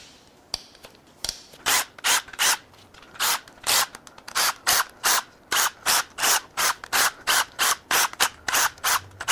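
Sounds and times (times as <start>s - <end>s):
ratchet wrench cracking tower bolts loose during engine work: 1.7s - 9.3s.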